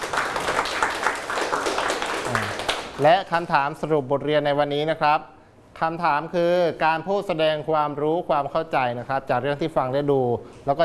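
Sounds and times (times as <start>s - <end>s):
classroom students clapping: 0.0s - 3.1s
speech: 3.0s - 10.8s.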